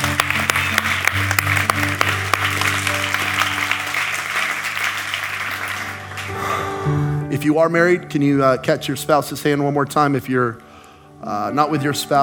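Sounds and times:
audience clapping hands: 0:00.0 - 0:06.7
speech: 0:07.4 - 0:12.2.

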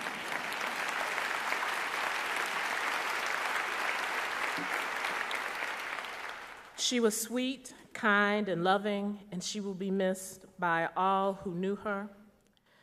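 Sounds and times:
audience applause: 0:00.0 - 0:06.8
speech: 0:06.8 - 0:12.2.

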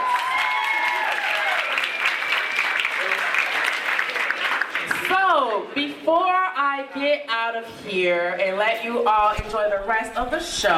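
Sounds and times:
audience applause: 0:00.0 - 0:05.2
speech: 0:05.8 - 0:10.7.

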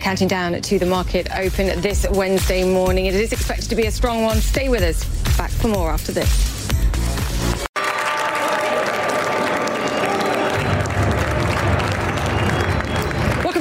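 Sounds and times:
speech: 0:00.1 - 0:06.6
applause at New York Stock Exchange opening: 0:07.2 - 0:13.5.

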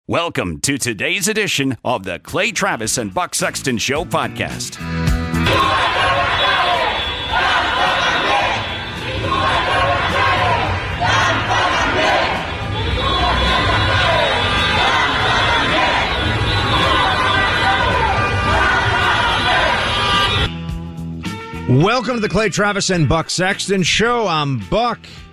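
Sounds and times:
speech: 0:00.1 - 0:06.5, 0:21.7 - 0:25.3
crowd of protesters in Cuba shouting and chanting: 0:05.4 - 0:20.5.

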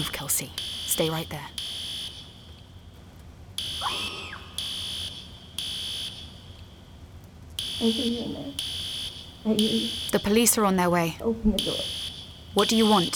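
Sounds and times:
speech: 0:00.0 - 0:01.7, 0:07.8 - 0:08.8, 0:09.4 - 0:13.1
lockdown alarm ringing: 0:00.6 - 0:02.6, 0:03.6 - 0:06.6, 0:07.6 - 0:11.0, 0:11.6 - 0:13.1.

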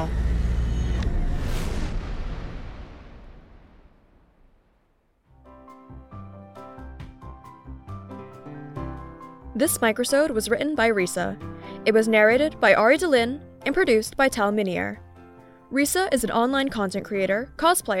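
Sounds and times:
sonic boom effect: 0:00.0 - 0:05.2
music: 0:05.3 - 0:17.9
speech: 0:09.6 - 0:15.0, 0:15.7 - 0:17.9.

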